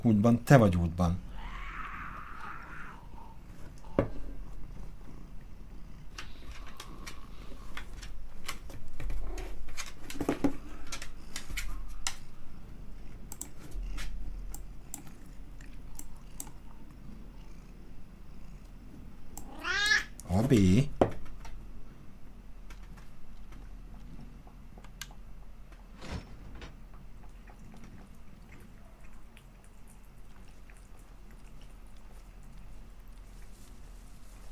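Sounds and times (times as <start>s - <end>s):
speech: 0.0s - 1.3s
low hum: 0.0s - 34.4s
cat meowing: 1.3s - 3.1s, 19.4s - 20.1s
keyboard typing clicks: 13.3s - 13.5s.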